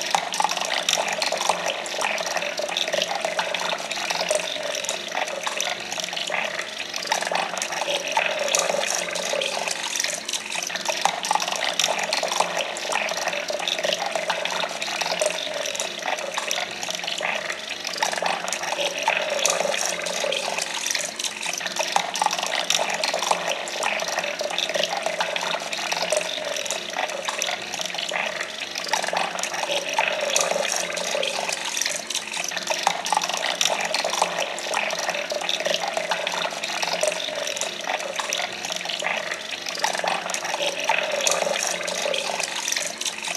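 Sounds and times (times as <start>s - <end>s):
slow water ambience: 0.0s - 43.3s.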